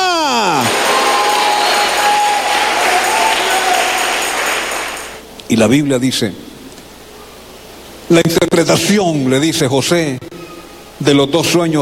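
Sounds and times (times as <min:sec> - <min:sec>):
people shouting: 0:00.0 - 0:04.2
audience applauding loudly: 0:00.0 - 0:05.2
speech: 0:05.5 - 0:06.5, 0:08.1 - 0:10.3, 0:11.0 - 0:11.8.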